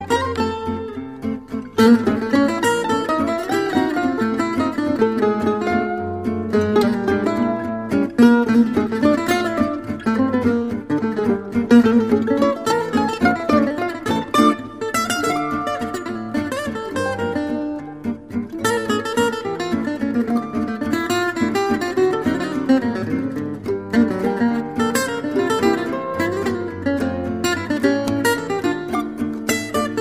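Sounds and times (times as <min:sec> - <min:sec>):
musette music: 0:00.0 - 0:29.9.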